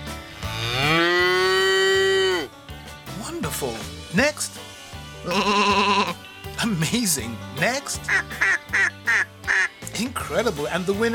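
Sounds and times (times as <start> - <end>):
cow mooing: 0.3 - 2.5, 5.3 - 6.2
speech: 3.6 - 8.9, 10.0 - 11.1.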